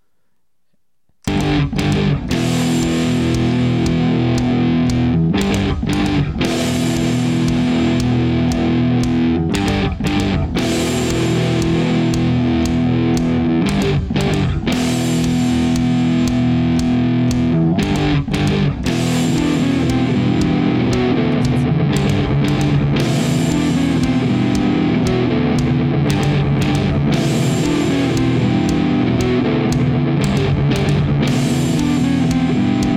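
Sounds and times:
metal song played through a vibrating dildo: 1.3 - 32.9.

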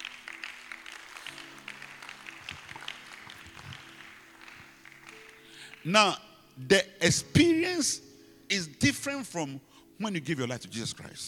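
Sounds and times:
audience clapping: 0.0 - 5.9
speech: 5.8 - 11.2.

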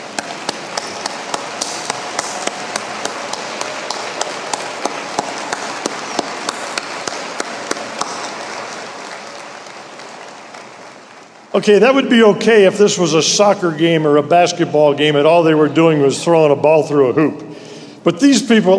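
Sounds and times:
audience applause: 0.0 - 11.8
sharp rhythmic claps: 0.0 - 12.3
speech: 11.6 - 18.7.

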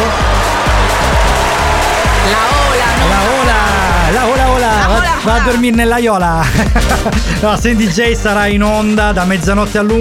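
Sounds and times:
crowd applause: 0.0 - 5.6
speech: 5.3 - 9.9
laughter: 6.3 - 7.9.

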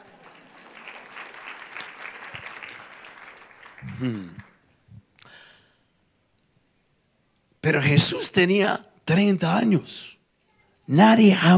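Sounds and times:
audience applause: 0.0 - 4.6
speech: 3.9 - 4.5, 7.7 - 10.2, 10.9 - 11.5.

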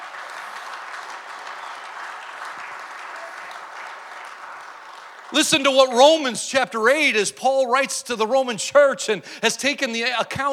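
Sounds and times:
audience hand clapping: 0.0 - 6.4
speech: 5.3 - 10.5.

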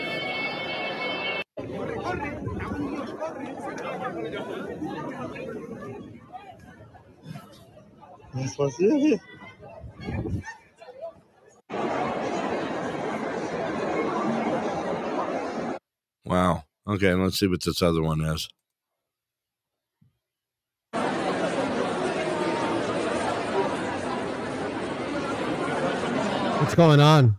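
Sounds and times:
crowd chattering while exiting a subway: 0.0 - 16.5, 21.0 - 27.3
speech: 1.8 - 6.2, 8.4 - 9.3, 16.3 - 18.6, 26.6 - 27.3.

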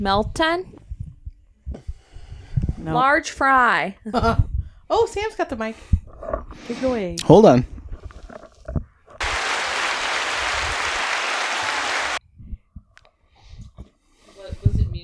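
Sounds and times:
speech: 0.0 - 0.8, 2.8 - 6.0, 6.6 - 7.7
soundboard applause sound effect: 9.2 - 12.2.

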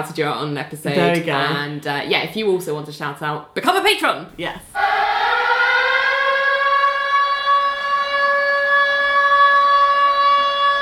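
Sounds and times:
speech: 0.0 - 5.1
alarm siren: 4.8 - 10.7.

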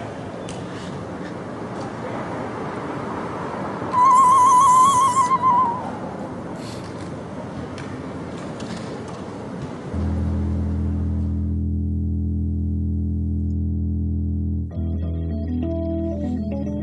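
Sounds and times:
noisy airy wash with bright tone: 0.0 - 11.8
loud sustained low synth drone: 9.9 - 16.8
synthesizer cover music: 14.4 - 16.8.

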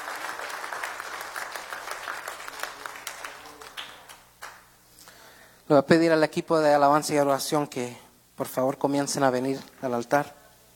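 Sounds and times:
audience applause: 0.0 - 4.6
speech: 5.7 - 10.4.

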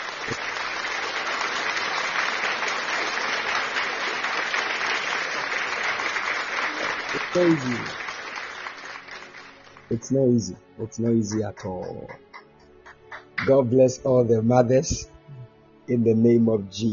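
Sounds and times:
audience applause for mothers at a church testimony service: 0.0 - 10.0, 11.1 - 13.5
speech: 7.4 - 8.0, 9.9 - 12.2, 13.4 - 15.1, 15.9 - 16.9.

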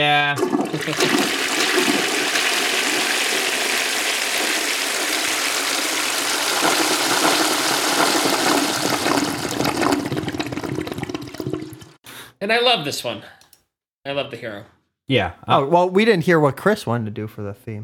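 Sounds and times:
speech: 0.0 - 2.1, 12.4 - 13.4, 14.0 - 17.8
toilet flushing: 0.0 - 12.0.

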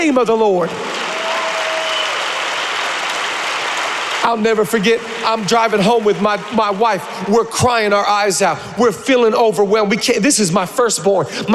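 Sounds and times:
speech: 0.0 - 1.0, 4.2 - 11.5
audience clapping: 0.6 - 7.9.

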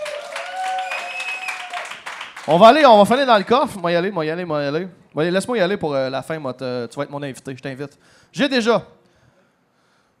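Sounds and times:
audience applause: 0.0 - 3.5
speech: 2.4 - 9.0.

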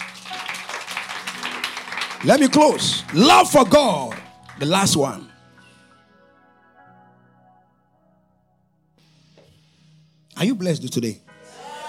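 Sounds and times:
audience clapping: 0.0 - 5.3
speech: 2.2 - 5.3, 10.4 - 11.4.

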